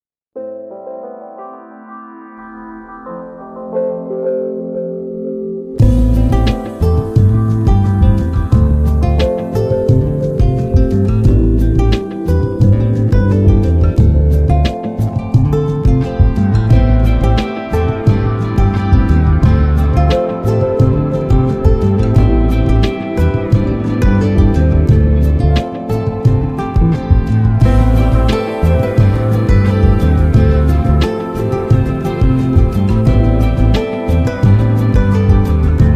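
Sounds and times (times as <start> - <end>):
moody groove: 5.8 - 35.9.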